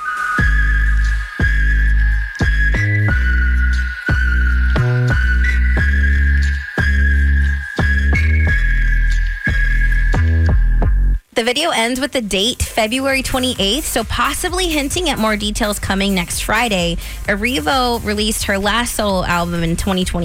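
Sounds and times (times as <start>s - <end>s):
singer whistling in a studio: 0.0s - 11.2s
speech: 11.4s - 20.2s.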